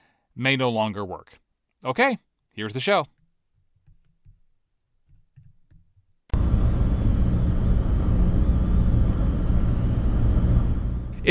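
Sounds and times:
speech: 0.4s - 3.2s
ferry engine rumble on choppy water: 6.4s - 11.3s.

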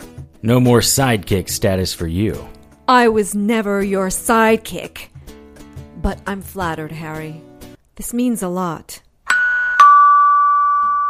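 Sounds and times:
speech: 0.4s - 5.1s, 6.0s - 9.0s
two-note doorbell chime: 9.3s - 11.0s.

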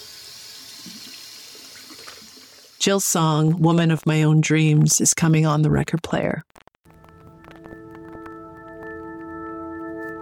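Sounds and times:
running tap water as hands are washed in a home kitchen: 0.0s - 3.4s
speech: 2.8s - 6.6s.

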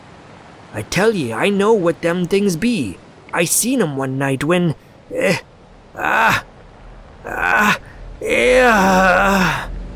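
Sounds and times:
speech: 0.7s - 6.4s, 7.6s - 9.6s
old man's hideous shriek: 5.1s - 6.5s, 7.2s - 9.8s.

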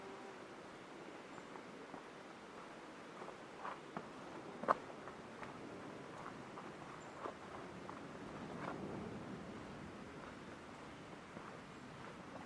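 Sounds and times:
soft rushing forest wash in Portland's Ancient Forest Preserve: 0.0s - 12.4s.

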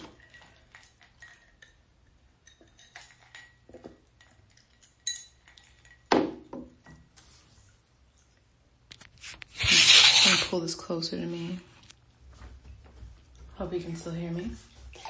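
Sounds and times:
drinking glass clinking while sipping water: 4.7s - 6.1s
speech: 10.5s - 11.7s, 13.6s - 14.7s.

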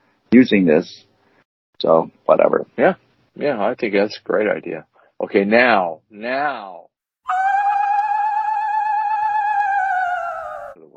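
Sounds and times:
speech: 0.3s - 1.1s, 1.8s - 7.4s
ululation: 7.3s - 10.9s.

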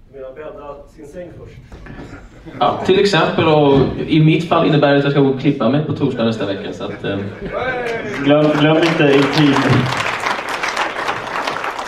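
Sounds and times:
speech: 0.1s - 10.0s
laughter: 1.7s - 4.1s, 6.4s - 11.4s
audience applause: 7.4s - 11.8s.

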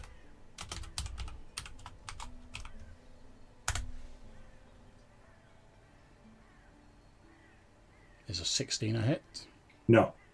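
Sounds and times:
fingers typing on a computer keyboard: 0.0s - 2.9s, 3.6s - 3.9s
speech: 8.3s - 10.2s.

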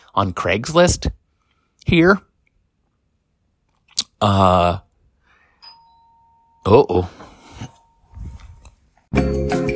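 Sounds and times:
speech: 0.2s - 1.2s, 1.8s - 2.3s, 4.2s - 4.8s, 6.6s - 7.7s, 9.1s - 9.6s
electronic doorbell ringing: 5.6s - 8.6s.

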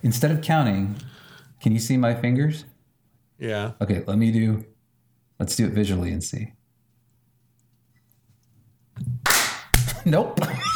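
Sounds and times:
speech: 0.0s - 2.7s, 3.4s - 4.7s, 5.4s - 6.6s, 10.0s - 10.7s
hand clap: 9.3s - 10.0s.

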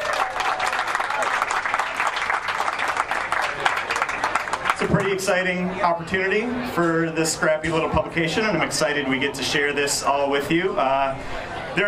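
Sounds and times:
audience applause: 0.0s - 5.1s
murmur of voices: 3.1s - 11.8s
speech: 4.8s - 11.8s.

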